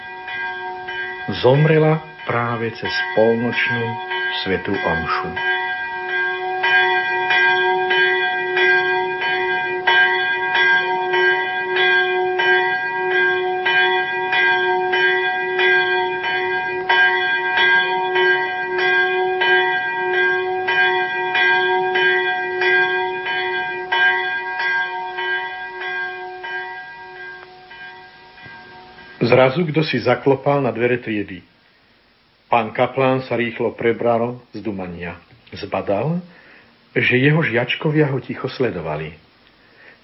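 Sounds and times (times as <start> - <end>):
church death knell bell tolling: 0.0 - 31.3
speech: 1.3 - 5.5, 29.4 - 31.5, 32.5 - 36.3, 37.0 - 39.2.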